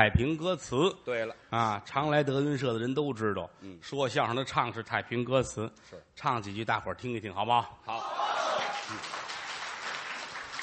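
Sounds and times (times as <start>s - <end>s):
speech: 0.0s - 9.2s
audience applause at a crosstalk comedy show: 8.2s - 10.6s.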